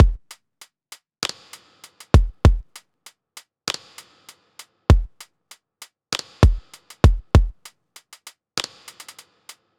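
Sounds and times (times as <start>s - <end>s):
hip-hop drum loop at 98 BPM: 0.0s - 0.4s, 1.2s - 2.8s, 3.7s - 5.3s, 6.1s - 9.7s.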